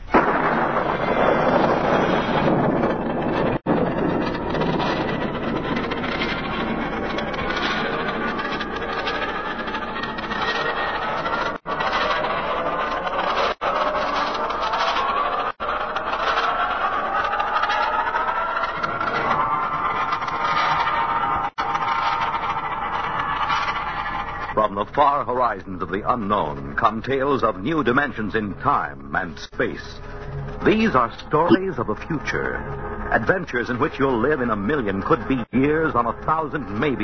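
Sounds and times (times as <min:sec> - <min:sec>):
rocket launch roar, radio show intro effect: 0:00.0 - 0:24.6
speech: 0:25.0 - 0:37.0.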